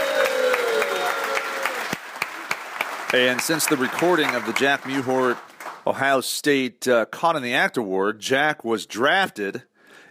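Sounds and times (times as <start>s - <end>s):
applause for student athletes: 0.0s - 6.0s
speech: 3.1s - 9.7s.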